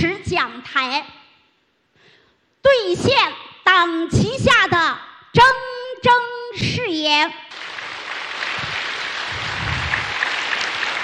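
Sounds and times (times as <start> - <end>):
speech: 0.3 - 1.2, 2.7 - 7.4
audience applause: 7.5 - 11.0.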